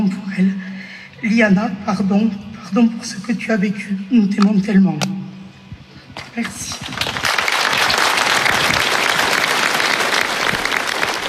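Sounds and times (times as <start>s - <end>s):
speech: 1.2s - 5.2s, 6.4s - 7.1s
audience applauding: 6.8s - 11.2s.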